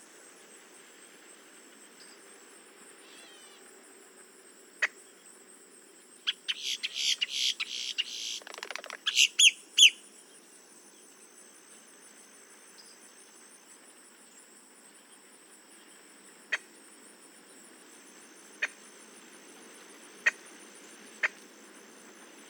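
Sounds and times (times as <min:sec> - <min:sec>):
boat-tailed grackle Quiscalus major calls: 0:03.0 - 0:03.6, 0:06.5 - 0:10.0.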